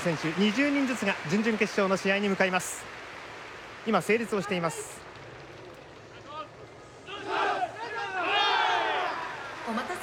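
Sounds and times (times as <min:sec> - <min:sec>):
speech: 0:00.0 - 0:03.0, 0:03.8 - 0:05.0
stadium crowd applause: 0:00.0 - 0:06.0, 0:08.0 - 0:10.0.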